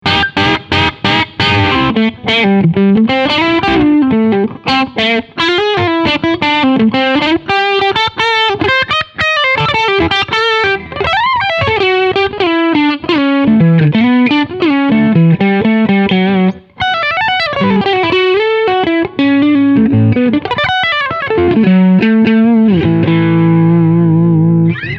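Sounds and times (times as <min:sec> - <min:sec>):
medium gain distorted guitar: 0:00.0 - 0:24.9.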